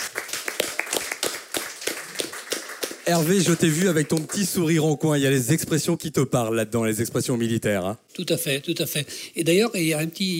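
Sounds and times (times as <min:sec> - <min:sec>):
scattered handclaps from a small audience: 0:00.0 - 0:04.5
speech: 0:03.1 - 0:10.3.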